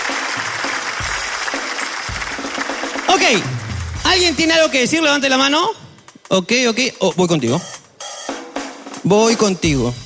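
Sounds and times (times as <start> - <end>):
audience applause: 0.0 - 4.0
speech: 3.2 - 7.8, 9.1 - 10.0.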